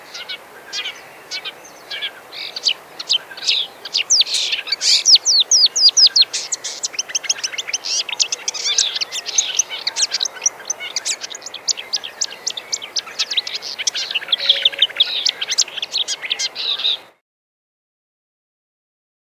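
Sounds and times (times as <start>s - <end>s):
marsh warbler singing: 0.0s - 17.1s.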